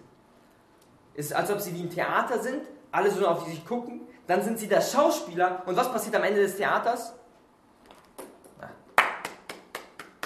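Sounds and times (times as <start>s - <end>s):
speech: 1.2s - 7.2s
hand clapping: 8.2s - 10.2s.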